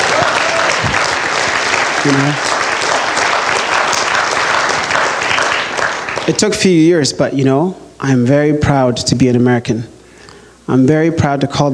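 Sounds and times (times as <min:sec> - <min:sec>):
audience clapping: 0:00.0 - 0:06.8
speech: 0:02.0 - 0:02.5, 0:06.3 - 0:10.0, 0:10.7 - 0:11.7.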